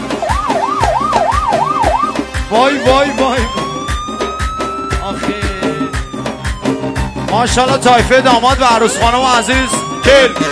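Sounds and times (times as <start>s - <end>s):
ambulance siren sound effect played at a wedding celebration: 0.0s - 10.4s
regular low thumps: 0.0s - 10.4s
speech: 2.5s - 3.6s, 7.3s - 10.4s.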